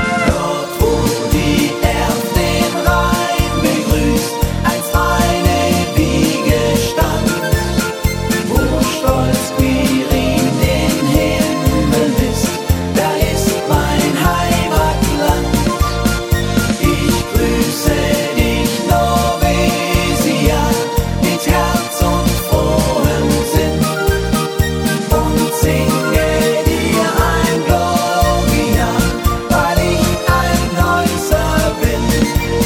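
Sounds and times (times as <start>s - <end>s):
choir: 0.1s - 24.3s, 25.0s - 32.5s.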